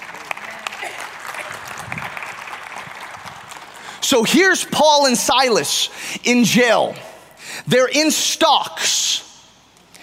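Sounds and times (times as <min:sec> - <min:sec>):
audience applause: 0:00.0 - 0:04.1
speech: 0:04.1 - 0:09.2.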